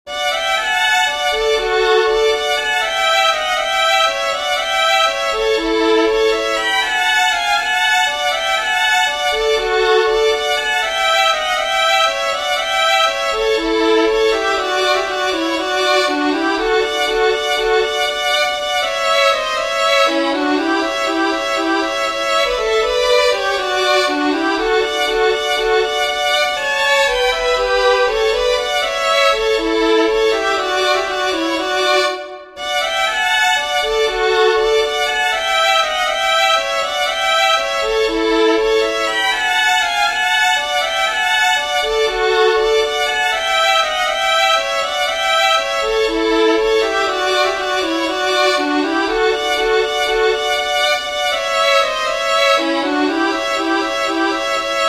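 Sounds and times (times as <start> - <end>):
fiddlers playing a two-step with harmony: 0.1 - 54.8.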